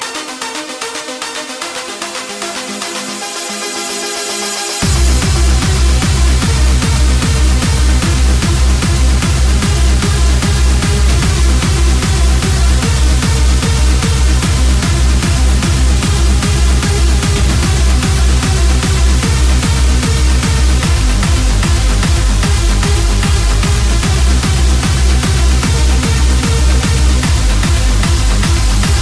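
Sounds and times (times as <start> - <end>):
hardcore music: 0.0 - 29.0.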